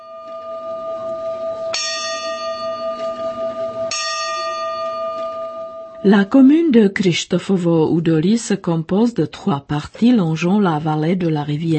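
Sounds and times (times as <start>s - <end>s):
clock bell chiming the quarter hour: 0.0s - 6.5s
low steady hum: 0.0s - 11.7s
speech: 6.0s - 11.7s.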